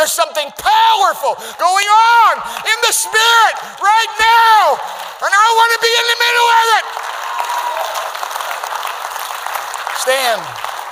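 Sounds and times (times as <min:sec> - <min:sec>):
speech: 0:00.0 - 0:07.1, 0:10.0 - 0:10.7
crowd clapping during worship: 0:02.2 - 0:10.9.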